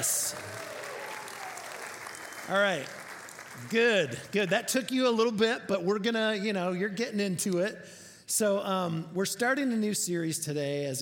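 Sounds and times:
faint cheering voices: 0:00.0 - 0:02.9
crowd applause: 0:00.0 - 0:04.4
speech: 0:02.5 - 0:03.0, 0:03.6 - 0:11.0.

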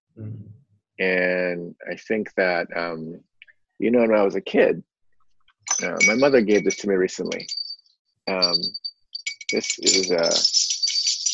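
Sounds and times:
voice sounds: 0:00.2 - 0:03.2, 0:03.8 - 0:04.8, 0:05.8 - 0:07.4, 0:08.3 - 0:08.7, 0:09.6 - 0:10.4
speech: 0:00.2 - 0:04.9, 0:05.7 - 0:07.6, 0:08.2 - 0:08.8, 0:09.5 - 0:10.7
small shop door bell jingling: 0:05.7 - 0:11.3.

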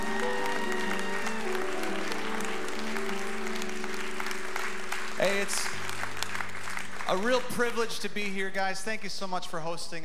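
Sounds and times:
audience clapping: 0:00.0 - 0:08.6
speech: 0:05.3 - 0:05.8, 0:07.1 - 0:10.0.

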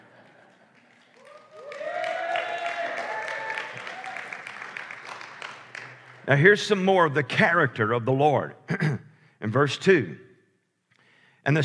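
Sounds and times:
audience clapping: 0:00.0 - 0:06.5
speech: 0:06.3 - 0:10.3, 0:11.4 - 0:11.6.

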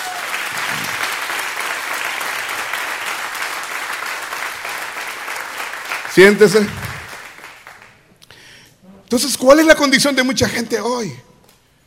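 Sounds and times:
audience applause: 0:00.0 - 0:08.0
speech: 0:06.2 - 0:06.8, 0:09.1 - 0:11.3.

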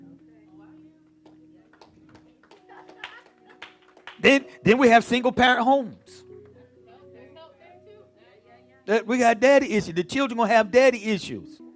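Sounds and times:
audience clapping: 0:01.2 - 0:04.5
speech: 0:04.2 - 0:06.2, 0:08.9 - 0:11.6.

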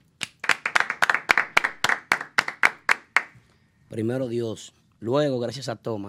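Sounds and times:
applause: 0:00.2 - 0:03.4
speech: 0:03.9 - 0:06.0.

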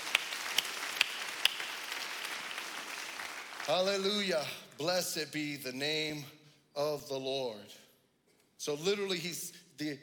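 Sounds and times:
audience clapping: 0:00.0 - 0:04.4
speech: 0:03.7 - 0:07.8, 0:08.6 - 0:10.0.

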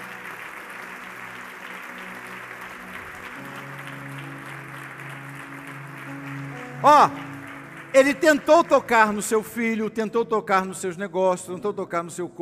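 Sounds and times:
audience applauding: 0:00.0 - 0:09.7
speech: 0:06.8 - 0:07.3, 0:07.9 - 0:12.4.

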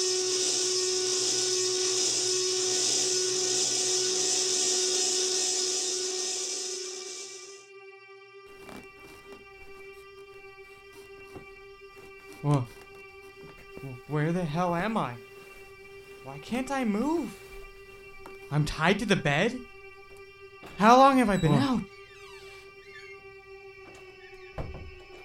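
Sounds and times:
bone saw roaring with high-pitched whine: 0:00.0 - 0:07.6, 0:19.0 - 0:25.2
speech: 0:12.4 - 0:12.8, 0:14.1 - 0:15.2, 0:16.2 - 0:17.4, 0:18.5 - 0:19.7, 0:20.8 - 0:21.9.

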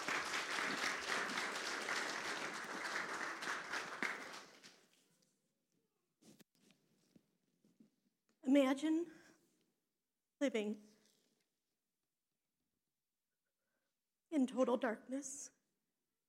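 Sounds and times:
audience applause welcoming a speaker to the stage: 0:00.0 - 0:04.8
speech: 0:08.5 - 0:09.2, 0:10.4 - 0:10.9, 0:14.4 - 0:15.6.

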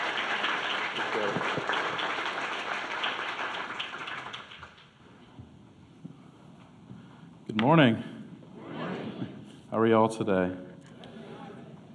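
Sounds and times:
audience applause: 0:00.0 - 0:04.9
speech: 0:07.6 - 0:08.1, 0:09.8 - 0:10.7.

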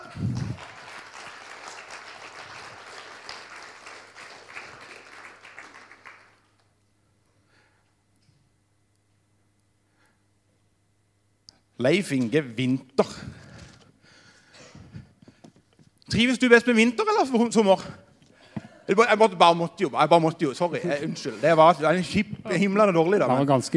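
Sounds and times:
audience applause: 0:00.0 - 0:06.6
speech: 0:11.8 - 0:13.4, 0:16.2 - 0:18.0, 0:18.9 - 0:23.7.

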